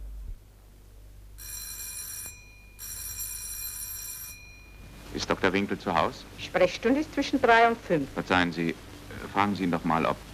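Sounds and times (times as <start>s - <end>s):
low steady hum: 0.0s - 10.3s
electric doorbell ringing: 1.4s - 5.0s
speech: 5.2s - 10.3s.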